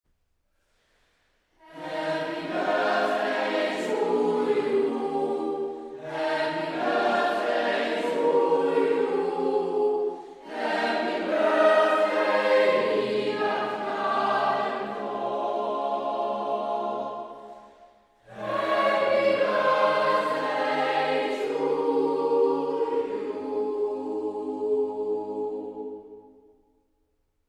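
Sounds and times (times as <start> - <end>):
boys choir singing a birthday song: 1.6 - 26.3.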